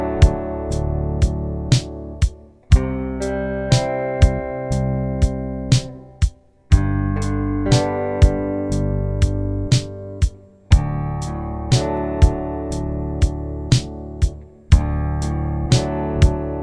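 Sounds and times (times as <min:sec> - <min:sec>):
bass notes D C G D: 0:00.0 - 0:16.6.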